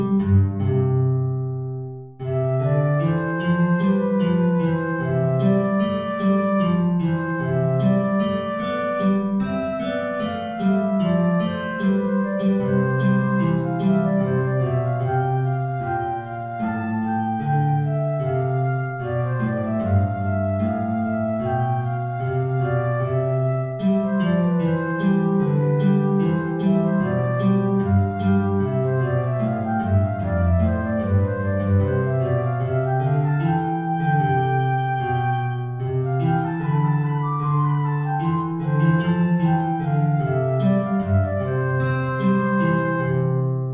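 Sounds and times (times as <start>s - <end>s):
flute melody in an aria: 0.0s - 43.7s
guitar playing in an aria: 0.0s - 43.7s.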